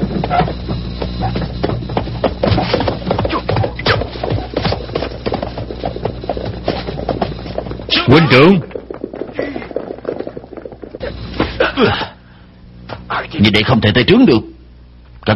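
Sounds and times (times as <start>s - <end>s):
horse galloping: 0.0s - 11.3s
speech: 8.1s - 8.7s, 13.4s - 14.5s.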